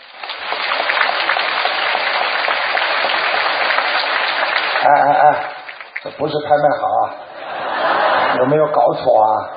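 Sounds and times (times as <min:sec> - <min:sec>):
audience applause at an auction: 0:00.0 - 0:06.6
speech: 0:04.8 - 0:05.4, 0:06.2 - 0:07.2, 0:08.4 - 0:09.5
laughter: 0:07.3 - 0:09.5.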